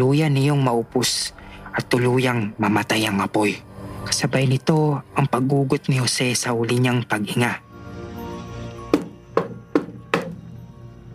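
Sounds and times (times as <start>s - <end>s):
speech: 0.0s - 7.6s
knocking on a wooden door: 8.9s - 10.5s.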